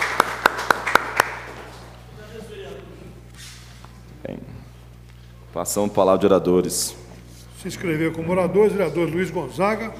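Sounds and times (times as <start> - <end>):
sharp handclaps: 0.0 - 1.9
low steady hum: 0.0 - 9.9
speech: 5.6 - 7.0, 7.6 - 9.9.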